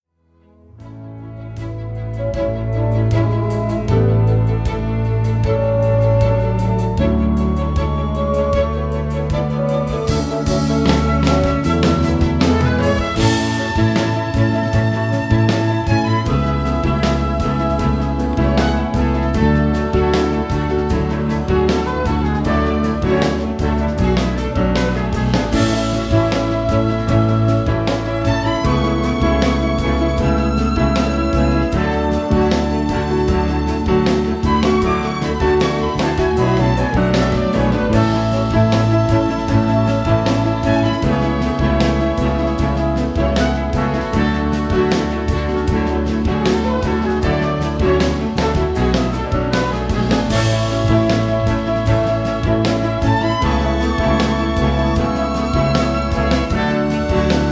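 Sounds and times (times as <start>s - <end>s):
instrumental music: 0.2s - 57.5s.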